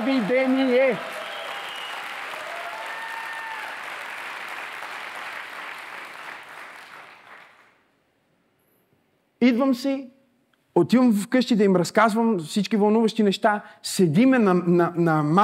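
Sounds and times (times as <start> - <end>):
audience applause: 0.0 - 7.8
speech: 0.3 - 1.2, 9.4 - 10.2, 10.8 - 15.4
faint whistles: 1.2 - 2.1.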